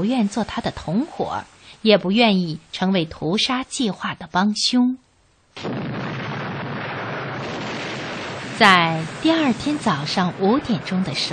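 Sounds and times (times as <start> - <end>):
speech: 0.0 - 5.0, 5.6 - 5.9, 8.6 - 11.3
bomb and cannon explosions: 5.6 - 11.3.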